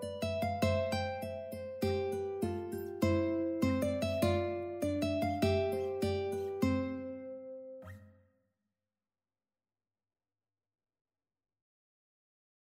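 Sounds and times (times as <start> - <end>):
ukulele duet playing a sonatina: 0.0 - 7.6.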